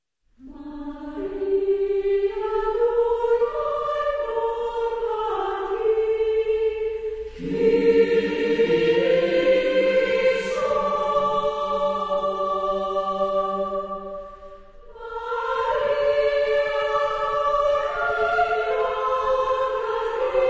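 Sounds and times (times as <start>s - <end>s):
women's choir: 0.4s - 20.4s.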